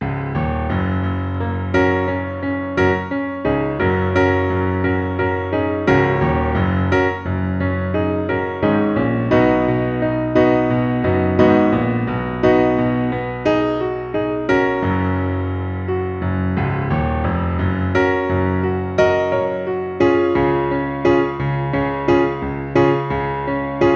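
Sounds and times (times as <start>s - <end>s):
moody piano piece: 0.0s - 23.9s.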